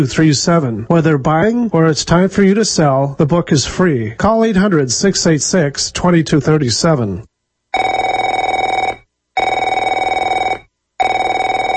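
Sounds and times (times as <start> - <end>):
speech: 0.0 - 7.3
telephone ringing: 7.7 - 11.7.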